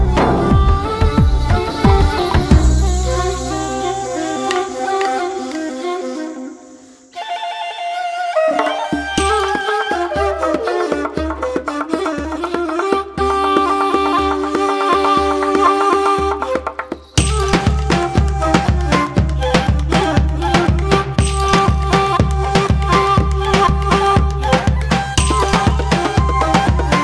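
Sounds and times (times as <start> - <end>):
Persian ney flute: 0.0 - 27.0.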